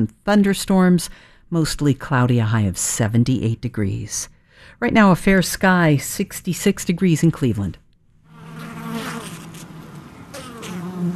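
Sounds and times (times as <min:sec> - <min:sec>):
speech: 0:00.0 - 0:07.8
honeybees buzzing at hive entrance: 0:08.3 - 0:11.1.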